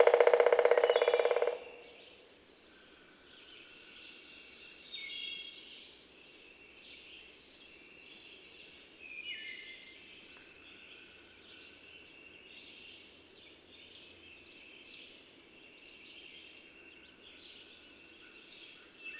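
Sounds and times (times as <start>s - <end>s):
birds singing with high thin whistles and chirpy warbles: 0.0s - 19.1s.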